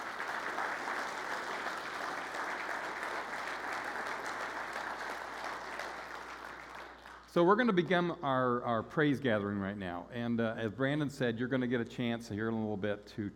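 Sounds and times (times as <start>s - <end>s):
audience applause: 0.0s - 7.3s
speech: 7.4s - 13.3s.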